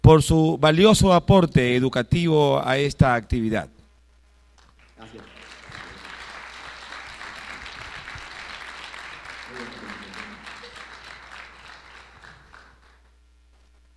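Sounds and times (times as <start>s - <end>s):
speech: 0.1s - 3.8s
audience applause: 4.8s - 13.1s.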